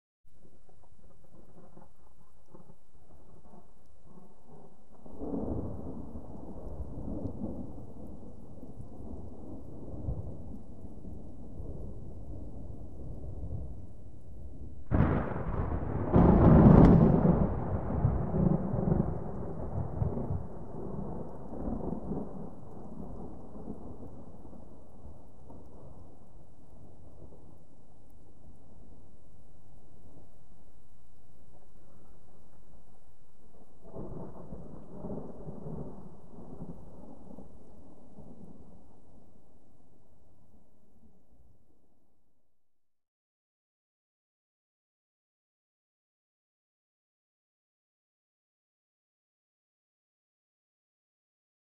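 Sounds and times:
medium distant thunder rumbles: 0.3s - 41.3s
light rain: 0.3s - 42.2s
close explosive thunder strike: 14.9s - 20.9s.

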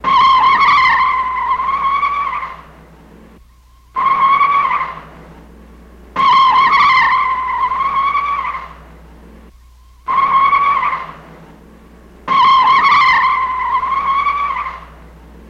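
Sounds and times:
car tyres skidding on cement: 0.0s - 2.8s, 4.0s - 5.3s, 6.2s - 8.8s, 10.1s - 11.4s, 12.3s - 15.1s.

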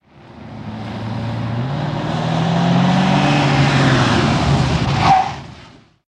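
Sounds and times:
Cadillac arriving fast and skidding to a stop on asphalt: 0.4s - 5.9s.

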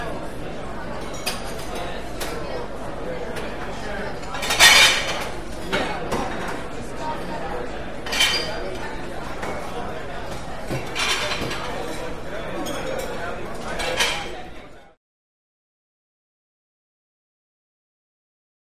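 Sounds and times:
adult busy restaurant walla in loud hard surfaced room: 0.0s - 15.0s
silverware rattle: 4.3s - 5.8s, 8.0s - 8.6s, 10.8s - 14.4s.

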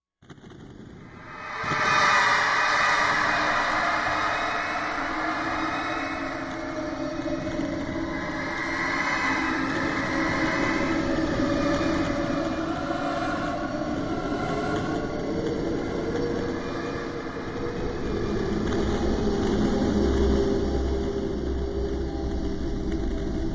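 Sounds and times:
people screaming on a haunted roller coaster: 1.0s - 19.2s
Ghoster Coaster haunted roller coaster moving: 1.0s - 23.5s.

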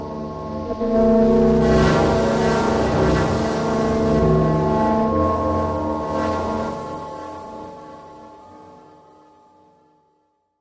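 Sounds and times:
slow metallic sound: 0.4s - 6.9s.

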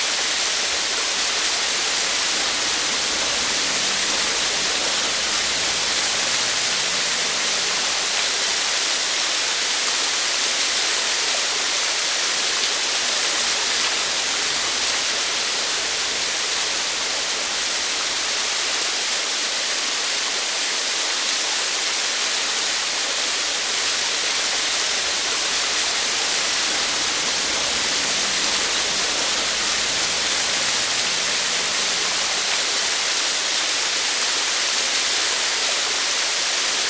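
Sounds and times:
small misty waterfall: 0.0s - 36.8s.

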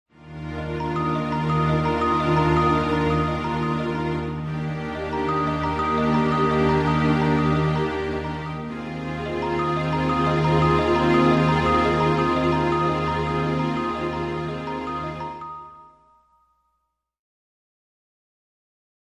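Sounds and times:
sustained string chords: 0.2s - 16.1s
contemplative bell pattern: 0.7s - 8.4s, 9.3s - 17.0s.

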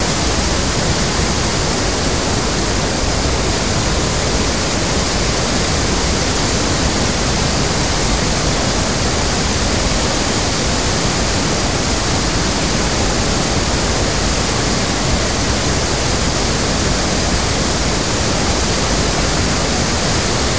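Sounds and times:
waterfall from Guri Dam, Venezuela: 0.0s - 20.5s.

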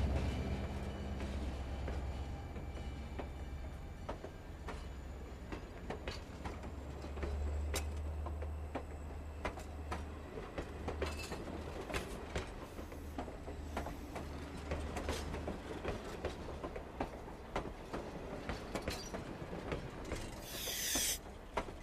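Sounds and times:
train station ambience: 0.0s - 21.8s.

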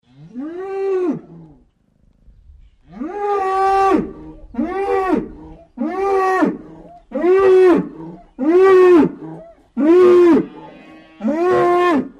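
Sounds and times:
bull bellowing: 3.0s - 12.1s.

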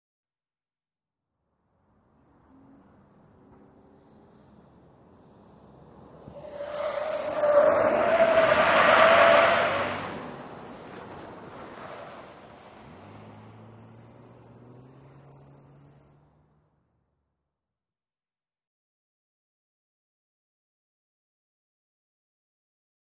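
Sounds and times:
SUV truck accelerating around corners: 1.8s - 17.2s.

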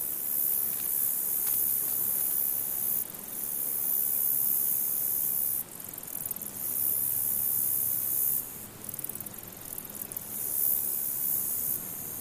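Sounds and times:
flies buzzing: 0.0s - 3.1s
cicadas buzzing: 0.0s - 12.1s
crickets chirping: 0.0s - 12.1s.

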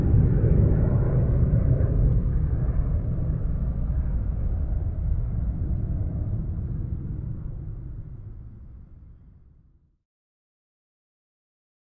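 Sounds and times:
heavy jet rumbling by outside an airport: 0.0s - 9.2s.

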